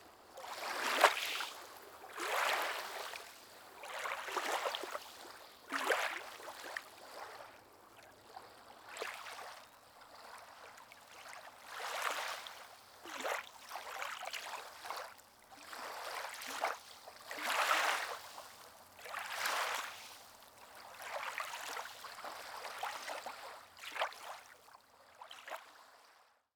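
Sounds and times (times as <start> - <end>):
small waves at a lake pier: 0.0 - 26.3.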